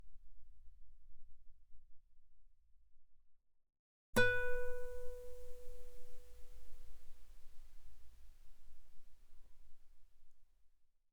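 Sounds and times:
guitar notes mezzo forte on the B string: 0:04.2 - 0:06.3.

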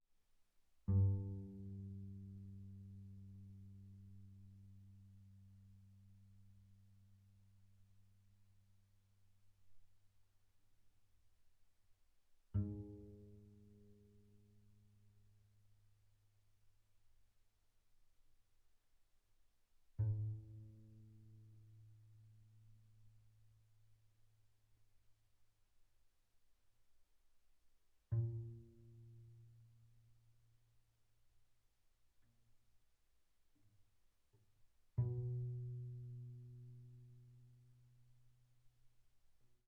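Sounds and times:
double bass pizzicato on the G string pianissimo G2 B2: 0:00.9 - 0:06.2, 0:12.5 - 0:15.1, 0:20.0 - 0:22.7, 0:28.1 - 0:29.9, 0:34.9 - 0:38.0.

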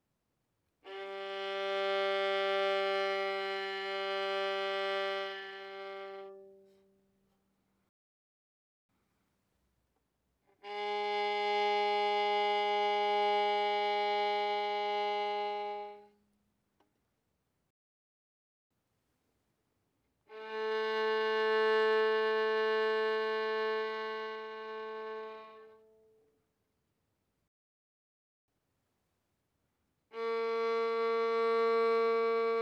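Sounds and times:
violin bowed mezzo-forte on the G string: 0:00.8 - 0:06.9, 0:10.6 - 0:16.2, 0:20.3 - 0:26.1, 0:30.1 - 0:32.6.

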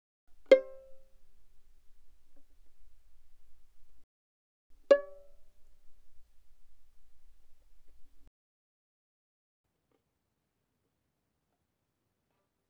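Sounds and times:
violin pizzicato mezzo-forte on the D string: 0:00.3 - 0:04.0, 0:04.8 - 0:08.3.

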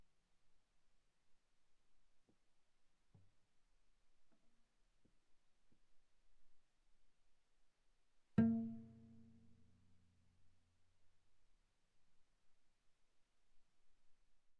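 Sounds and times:
viola pizzicato on the A string: 0:08.4 - 0:09.5.

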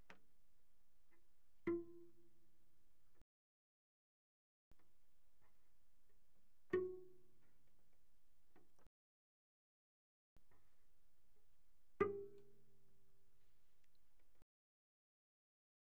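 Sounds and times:
very soft cello pizzicato on the G string, D flat 4 and G4: 0:01.2 - 0:02.5, 0:04.8 - 0:08.8, 0:10.4 - 0:14.4.

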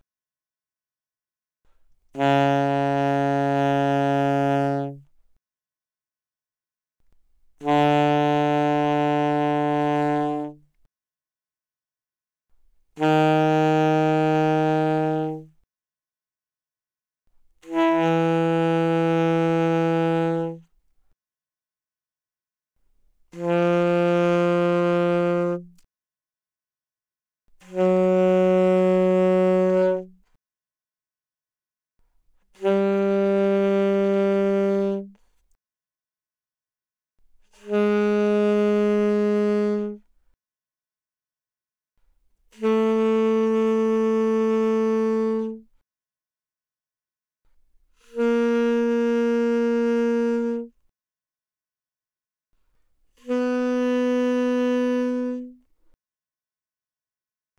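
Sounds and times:
alto saxophone playing mezzo forte without vibrato: 0:01.7 - 0:05.2, 0:07.5 - 0:10.9, 0:12.9 - 0:15.7, 0:17.6 - 0:20.8, 0:23.3 - 0:25.9, 0:27.5 - 0:30.4, 0:32.4 - 0:35.3, 0:37.4 - 0:40.1, 0:42.4 - 0:45.8, 0:47.9 - 0:50.9, 0:52.6 - 0:55.7.

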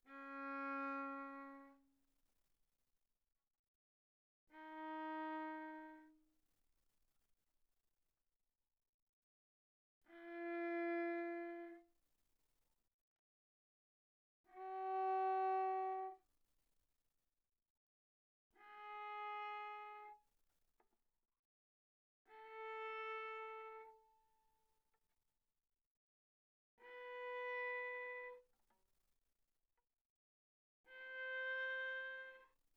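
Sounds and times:
viola bowed on C string very softly: 0:00.1 - 0:01.9, 0:04.5 - 0:06.2, 0:10.1 - 0:11.9, 0:14.5 - 0:16.2, 0:18.6 - 0:20.2, 0:22.3 - 0:24.5, 0:26.8 - 0:28.5, 0:30.9 - 0:32.6.

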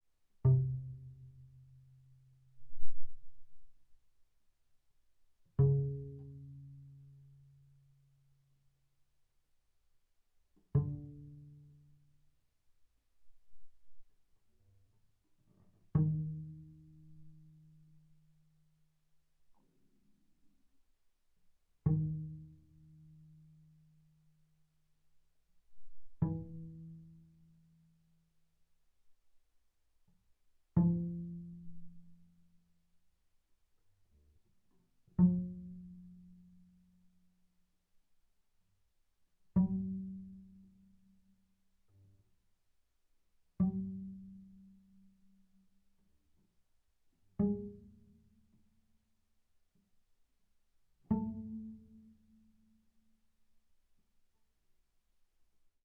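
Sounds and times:
double bass pizzicato on D string: 0:00.4 - 0:04.0, 0:05.5 - 0:08.5, 0:10.6 - 0:12.4, 0:13.2 - 0:20.7, 0:21.8 - 0:24.8, 0:25.6 - 0:28.2, 0:30.6 - 0:32.8, 0:34.0 - 0:37.4, 0:39.4 - 0:42.2, 0:43.5 - 0:45.7, 0:47.2 - 0:48.8, 0:51.0 - 0:52.8.

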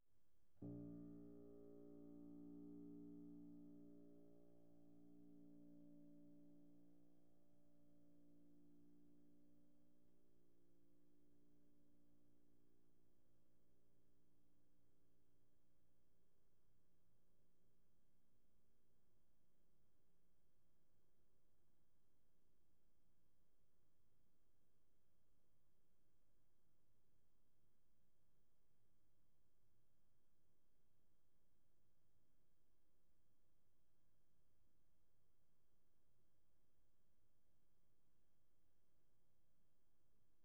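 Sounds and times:
soft piano note: 0:00.6 - 0:09.6.

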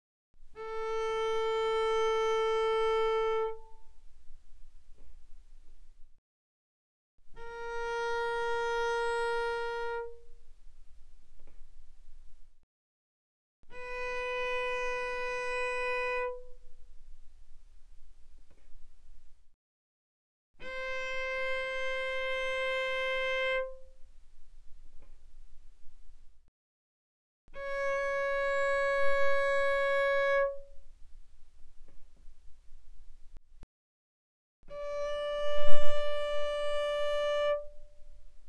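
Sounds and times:
bowed cello on the A string: 0:00.4 - 0:06.0, 0:07.3 - 0:12.5, 0:13.7 - 0:19.4, 0:20.6 - 0:26.4, 0:27.6 - 0:33.4, 0:34.7 - 0:38.4.

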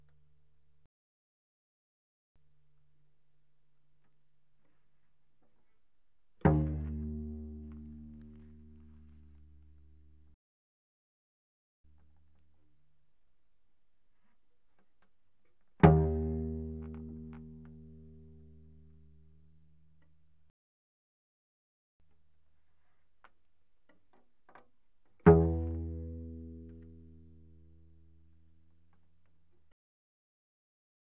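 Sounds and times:
cello pizzicato fortissimo on the C string, C2 to A2: 0:06.4 - 0:10.2, 0:15.7 - 0:20.2, 0:24.5 - 0:28.9.

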